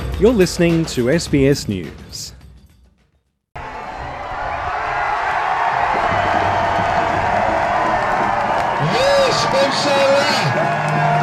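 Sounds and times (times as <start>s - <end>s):
speech: 0.2s - 2.4s
crowd cheering on the streets of Israel: 3.6s - 11.2s.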